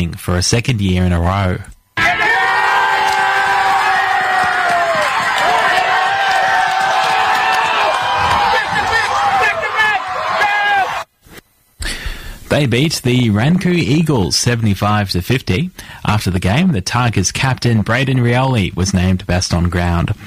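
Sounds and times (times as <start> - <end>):
speech: 0.0 - 1.7, 12.5 - 20.2
football crowd cheering: 2.0 - 11.1.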